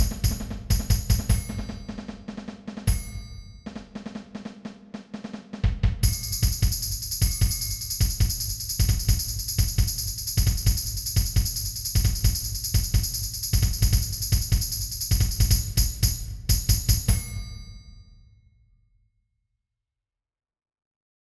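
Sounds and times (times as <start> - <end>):
batucada drumming: 0.0 - 4.3, 5.6 - 17.3.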